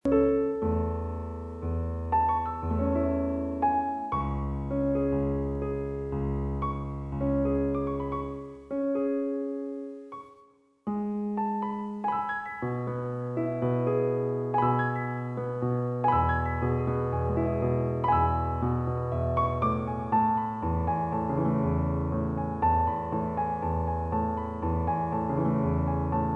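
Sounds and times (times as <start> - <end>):
piano: 0.0 - 26.3.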